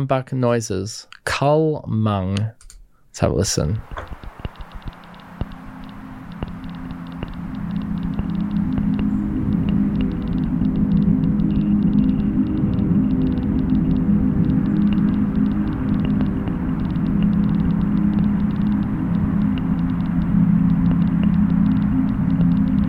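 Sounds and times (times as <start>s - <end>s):
speech: 0.0s - 2.6s, 3.2s - 4.2s
thick droning synth bed: 3.8s - 22.8s
trickling water: 3.8s - 22.8s.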